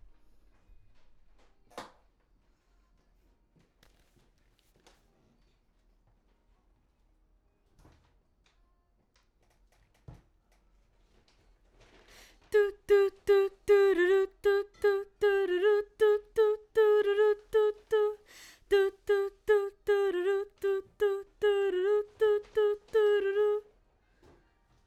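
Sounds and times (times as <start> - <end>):
background vocals: 12.5 - 23.7.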